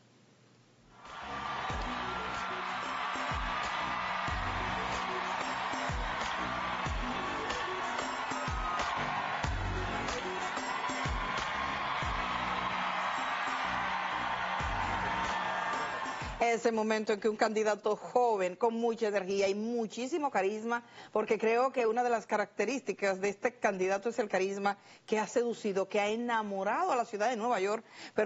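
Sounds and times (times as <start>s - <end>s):
applause from a played video: 1.0s - 16.4s
speech: 16.5s - 28.2s.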